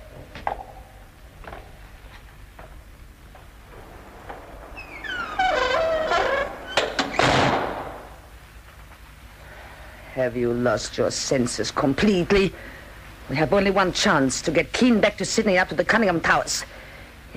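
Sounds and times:
door being bolted shut: 0:04.3 - 0:08.2
speech: 0:10.2 - 0:17.3.

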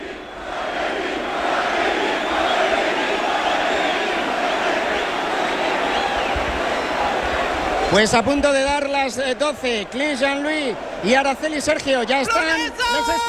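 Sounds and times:
festival crowd shouting in bullring: 0:00.0 - 0:13.2
speech: 0:07.9 - 0:13.2.

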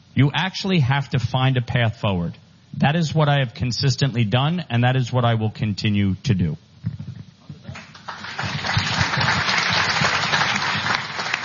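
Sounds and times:
speech: 0:00.2 - 0:07.0
audience applauding: 0:07.7 - 0:11.4.

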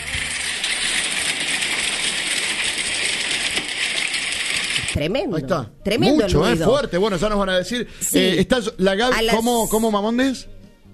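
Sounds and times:
hail falling: 0:00.1 - 0:05.0
speech: 0:05.0 - 0:10.6.

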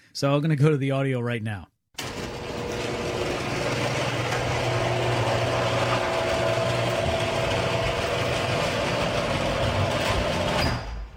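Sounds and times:
speech: 0:00.2 - 0:01.7
noisy garage door opening with old rollers: 0:02.0 - 0:11.1.

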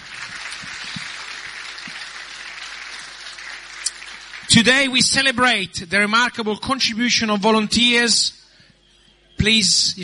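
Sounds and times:
audience applause: 0:00.0 - 0:05.0
speech: 0:04.6 - 0:08.4, 0:09.4 - 0:10.0.

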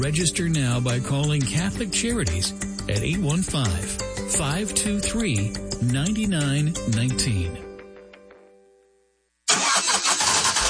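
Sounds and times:
speech: 0:00.0 - 0:07.7
faulty car engine cranking and running roughly: 0:09.5 - 0:10.6.

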